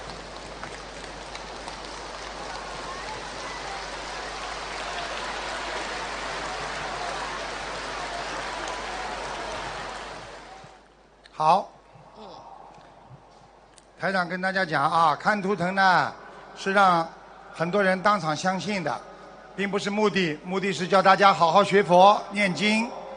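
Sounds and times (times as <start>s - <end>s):
enthusiastic large crowd applause: 0.0s - 10.8s
speech: 11.4s - 11.7s, 14.0s - 23.0s.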